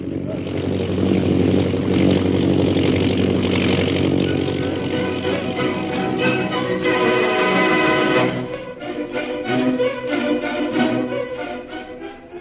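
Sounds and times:
airplane engine flying overhead: 0:00.0 - 0:12.3.

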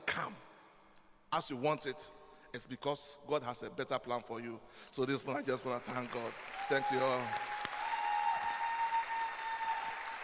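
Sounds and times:
speech: 0:01.3 - 0:07.5
audience clapping: 0:05.5 - 0:10.2.

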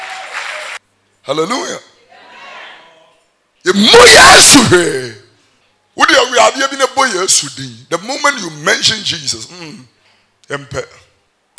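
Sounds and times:
audience clapping: 0:00.0 - 0:00.8
speech: 0:01.3 - 0:01.9, 0:03.6 - 0:05.2, 0:06.0 - 0:11.0
person shouting loudly: 0:03.8 - 0:04.8.

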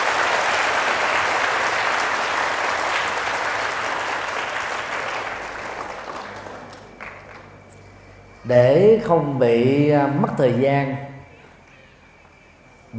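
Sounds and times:
loud applause: 0:00.0 - 0:07.7
speech: 0:08.5 - 0:11.1.

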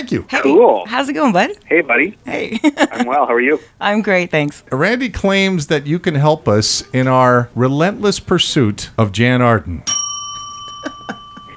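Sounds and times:
speech: 0:00.0 - 0:10.0
laughter: 0:00.0 - 0:11.5
bell ringing: 0:05.1 - 0:11.5.

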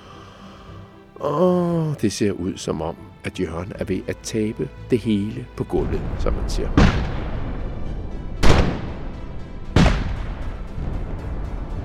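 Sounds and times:
speech: 0:01.2 - 0:07.2
English ships firing cannons in a naval battle: 0:05.8 - 0:11.8.

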